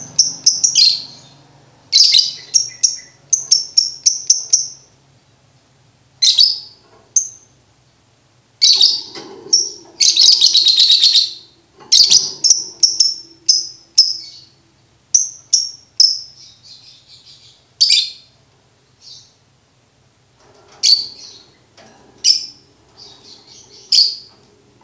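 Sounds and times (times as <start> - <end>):
lovebird chirping: 0.0 - 5.0, 6.2 - 7.5, 8.6 - 18.4, 19.0 - 19.4, 22.2 - 24.4.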